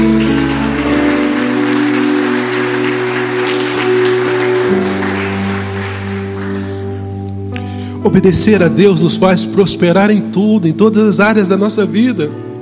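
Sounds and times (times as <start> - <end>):
audience applauding: 0.0 - 7.1
sustained keyboard chords: 0.0 - 12.6
speech: 8.1 - 12.5.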